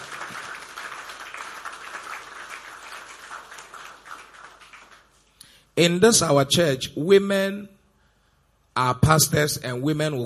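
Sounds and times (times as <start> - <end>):
crowd applauding: 0.0 - 5.3
speech: 5.8 - 7.8, 8.8 - 10.2.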